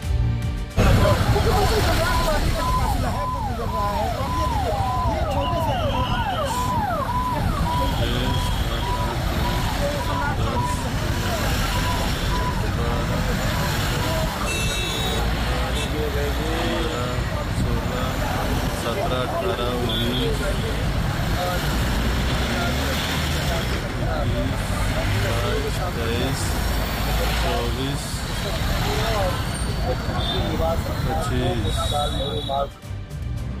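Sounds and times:
chief minister's motorcade of cars and trucks in India rumbling past: 0:00.0 - 0:33.5
voices talking: 0:00.8 - 0:32.8
chirping warbling horn or siren tones: 0:01.4 - 0:12.9
beeps: 0:01.6 - 0:13.2.

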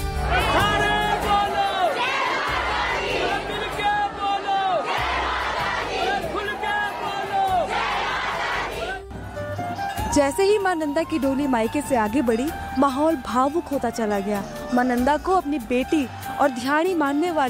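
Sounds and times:
large crowd of devotees chanting loud cheers: 0:00.1 - 0:09.0
speech: 0:10.2 - 0:17.4.

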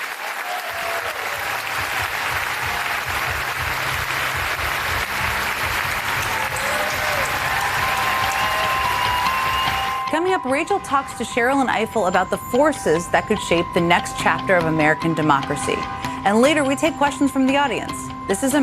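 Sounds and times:
audience applause welcoming Sherrilyn Ifill to the stage at a live event: 0:00.0 - 0:10.4
speech: 0:10.2 - 0:18.6.

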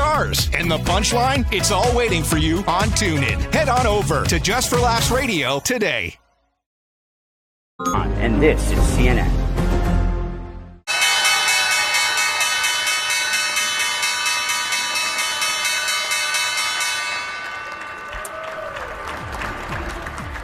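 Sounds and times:
speech: 0:00.2 - 0:06.2, 0:07.8 - 0:09.4
stock exchange opening bell ringing: 0:10.9 - 0:18.2
people clapping: 0:17.2 - 0:20.4.

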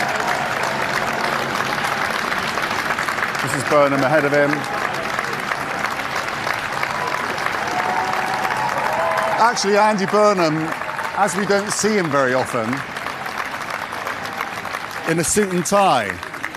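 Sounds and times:
crowd cheering and applauding: 0:00.0 - 0:16.5
speech: 0:03.6 - 0:04.8, 0:09.4 - 0:12.9, 0:15.1 - 0:16.5.

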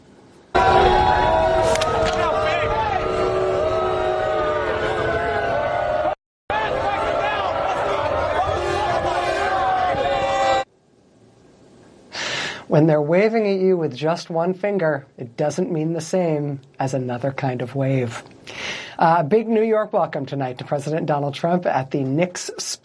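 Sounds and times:
Knicks fans shouting in the arena as Donald Trump arrives: 0:00.6 - 0:10.7
speech: 0:12.7 - 0:22.8.

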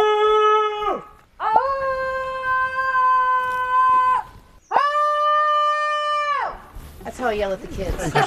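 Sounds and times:
people shouting into the woods: 0:00.0 - 0:06.6.

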